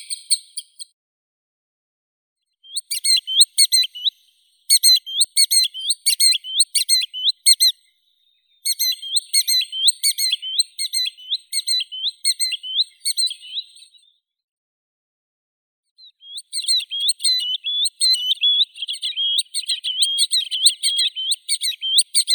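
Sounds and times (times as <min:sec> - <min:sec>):
green sandpiper Tringa ochropus calling: 0:02.7 - 0:04.2, 0:04.7 - 0:07.7, 0:08.7 - 0:13.9, 0:16.3 - 0:22.3.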